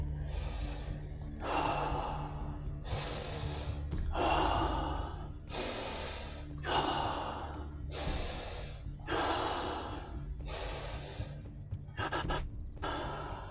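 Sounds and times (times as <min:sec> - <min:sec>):
deep rhythmic breathing in and out: 0:00.0 - 0:13.5.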